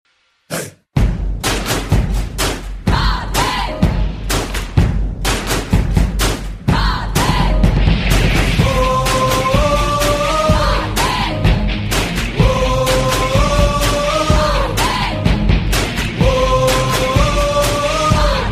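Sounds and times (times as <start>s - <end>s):
groovy music: 1.0s - 18.5s.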